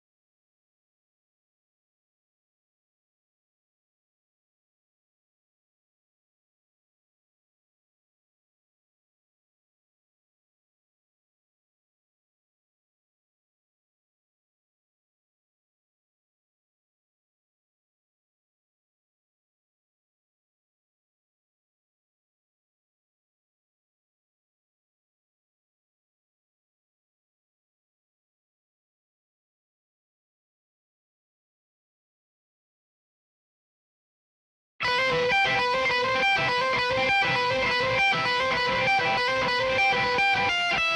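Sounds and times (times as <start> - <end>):
guitar: 34.8 - 40.9.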